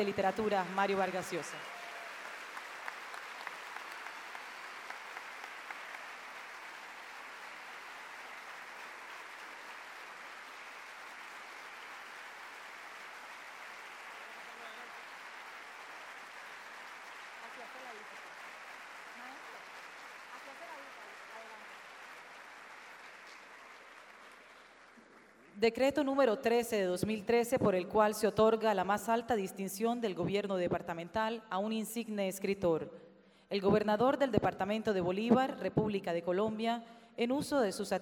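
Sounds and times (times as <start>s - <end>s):
speech: 0.0s - 1.8s, 25.6s - 37.9s
large crowd clapping: 0.0s - 25.6s.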